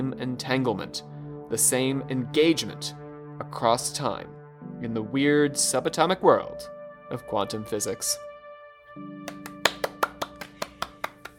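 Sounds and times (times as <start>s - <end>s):
speech: 0.0s - 8.3s, 9.0s - 9.3s
hand claps: 9.3s - 11.3s.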